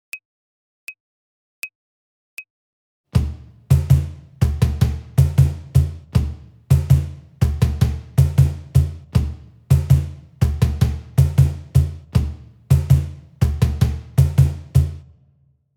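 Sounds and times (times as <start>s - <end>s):
samba music: 3.2s - 15.0s.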